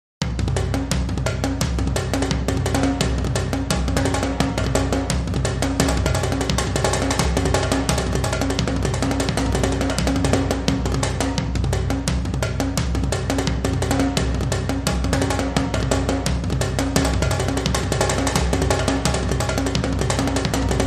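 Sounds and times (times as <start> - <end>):
light percussion: 0.2 - 20.8.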